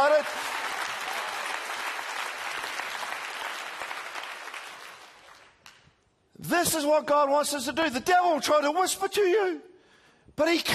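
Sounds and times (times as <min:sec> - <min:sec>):
large indoor crowd applauding: 0:00.0 - 0:05.8
speech: 0:00.2 - 0:00.6, 0:06.6 - 0:09.7, 0:10.4 - 0:10.7.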